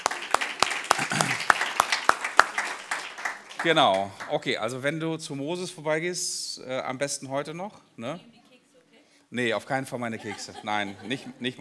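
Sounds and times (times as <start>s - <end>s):
hand claps: 0.0s - 4.3s
applause: 0.0s - 4.6s
speech: 3.6s - 8.4s, 9.3s - 11.5s
laughter: 10.0s - 11.5s.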